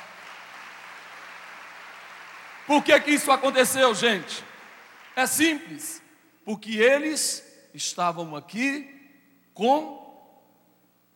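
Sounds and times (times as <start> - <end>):
audience applause: 0.0 - 5.2
speech: 2.7 - 4.5, 5.2 - 9.0, 9.6 - 10.0.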